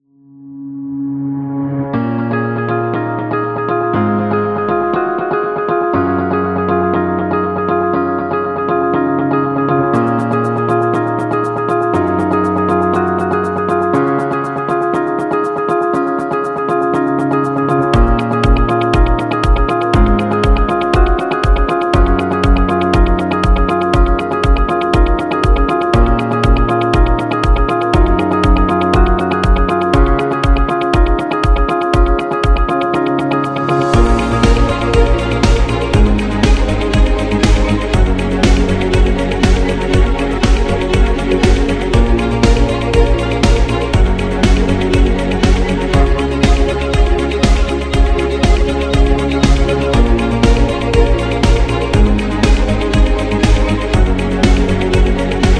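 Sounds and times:
inspirational corporate string music: 1.0s - 55.5s.

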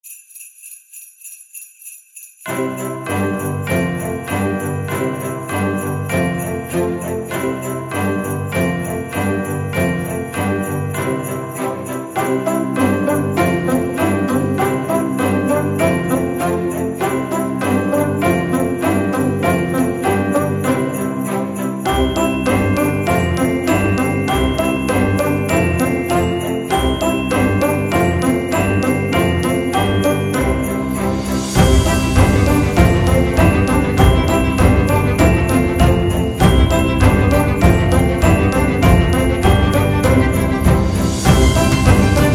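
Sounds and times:
Christmas sleigh bells: 0.0s - 42.3s.

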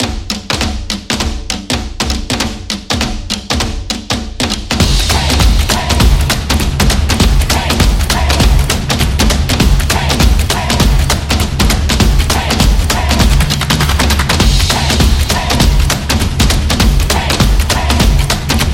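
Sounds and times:
beat: 0.0s - 18.7s
claps: 5.1s - 18.7s.

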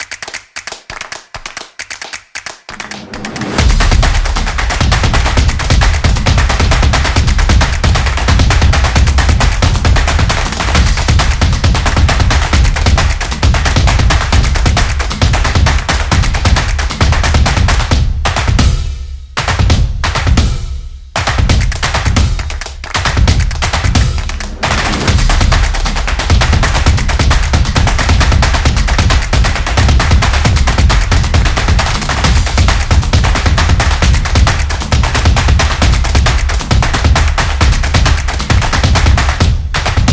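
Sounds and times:
percussion: 0.0s - 40.1s.

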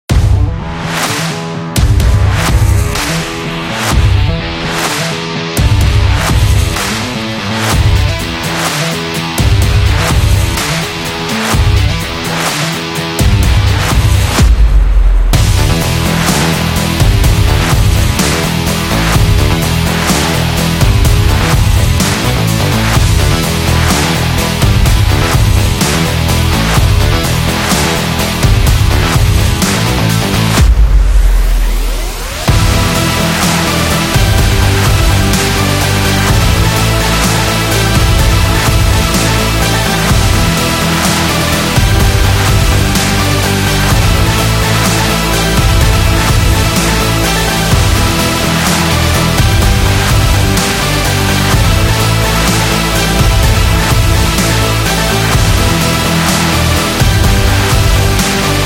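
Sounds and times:
sports rock music: 0.0s - 58.6s.

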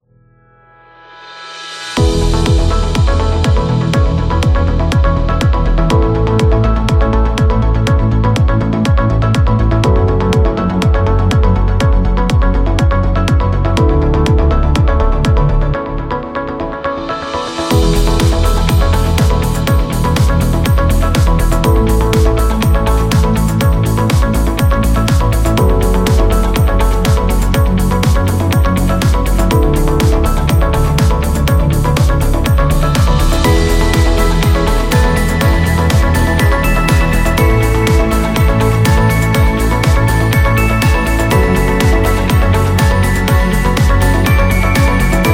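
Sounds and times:
uplifting corporate music: 0.6s - 45.3s.

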